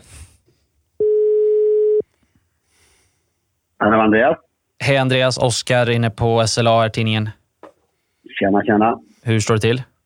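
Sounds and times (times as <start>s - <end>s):
phone ringback tone of an outgoing call: 1.0s - 2.0s
speech: 3.8s - 7.4s, 8.3s - 9.9s.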